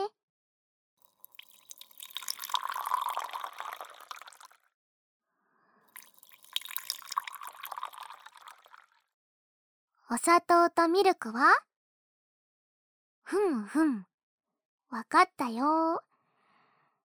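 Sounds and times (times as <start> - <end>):
black tea poured from a pot into a cup: 1.0 - 4.7, 5.9 - 9.0
speech: 10.1 - 11.7, 13.3 - 14.1, 14.9 - 16.1.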